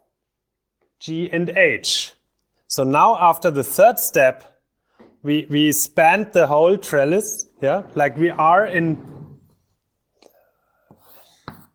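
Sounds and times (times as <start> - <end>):
speech: 1.0 - 4.5, 5.2 - 9.2
diagram being written by hand: 10.9 - 11.7.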